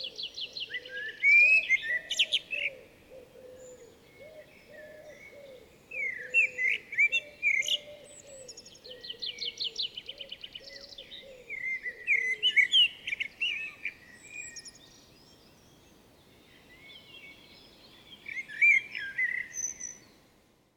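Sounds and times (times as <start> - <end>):
dove cooing: 0.0 - 12.6
common blackbird song: 0.0 - 20.4.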